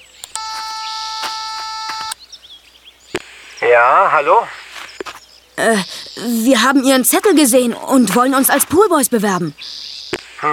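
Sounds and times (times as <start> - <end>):
faint bird chirps: 0.0 - 7.5, 9.2 - 10.5
electronic doorbell buzzing: 0.3 - 2.2
speech: 3.7 - 4.6, 5.6 - 9.8.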